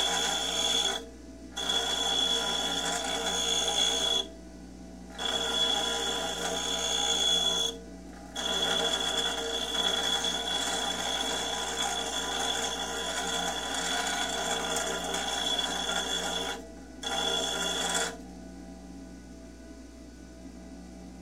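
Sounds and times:
construction grinder grinding metal: 0.0 - 1.0, 1.6 - 4.3, 5.2 - 7.7, 8.4 - 18.2.

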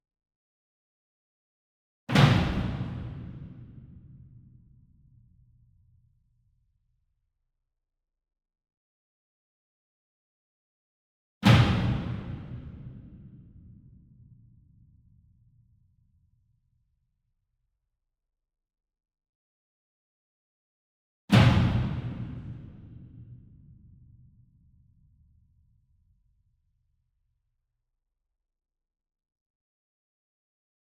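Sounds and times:
single 66 inch drum flam with hard beater far: 2.1 - 4.0, 11.4 - 13.3, 21.3 - 23.3.

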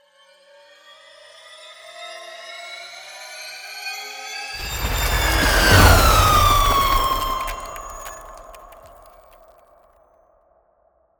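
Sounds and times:
ice spell cold whooshes: 4.6 - 9.3.

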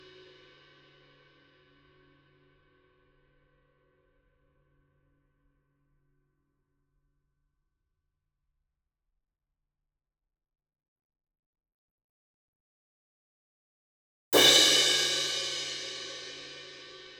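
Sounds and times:
crash cymbal hit hard with a medium beater: 14.3 - 17.1.

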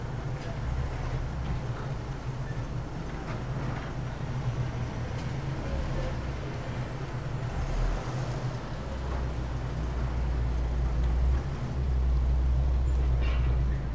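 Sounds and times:
parking lot general atmosphere: 0.0 - 13.9.

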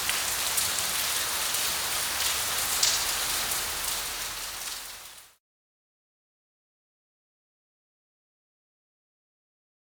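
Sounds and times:
rain in the street: 0.0 - 5.4.

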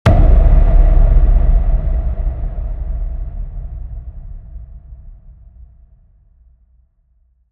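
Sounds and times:
low sci-fi cinematic hit: 0.1 - 6.2.

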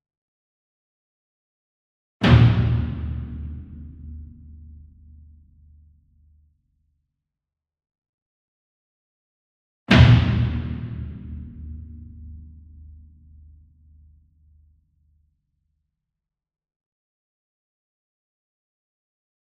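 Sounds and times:
40 inch concert bass drum flam with hard beater: 2.2 - 4.2, 9.9 - 12.1.

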